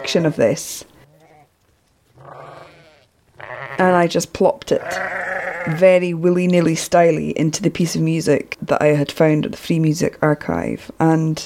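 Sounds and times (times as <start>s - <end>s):
speech: 0.0s - 0.9s, 3.8s - 11.4s
sheep munching on hay bales bleating: 1.1s - 1.5s, 2.2s - 3.9s, 4.8s - 5.9s.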